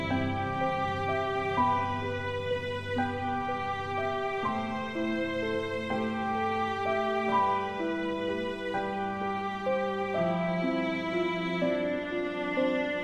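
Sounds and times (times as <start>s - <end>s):
piano playing funeral music: 0.0s - 13.0s
viola playing funeral music: 0.0s - 13.0s.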